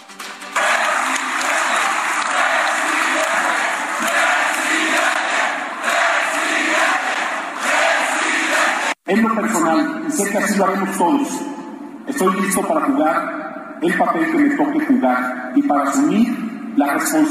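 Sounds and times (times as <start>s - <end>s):
crowd chanting presidente: 0.6s - 9.0s
speech: 9.2s - 17.2s.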